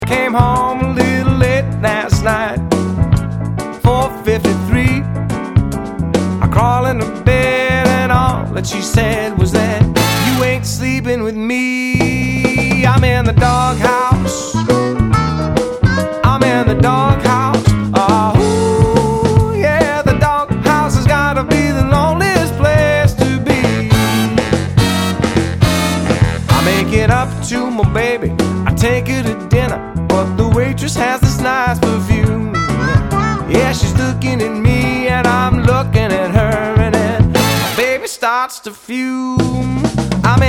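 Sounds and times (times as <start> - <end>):
blues music: 0.0 - 38.4, 39.2 - 40.4.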